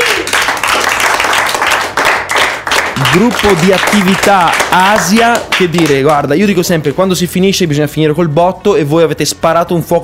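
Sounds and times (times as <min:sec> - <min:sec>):
audience applause at the close of a live session: 0:00.0 - 0:06.2
speech: 0:03.1 - 0:10.0.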